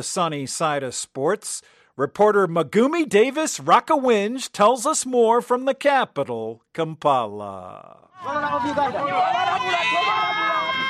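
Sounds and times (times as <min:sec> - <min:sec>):
speech: 0:00.0 - 0:10.8
roadside rally fans cheering and shouting: 0:08.1 - 0:10.8.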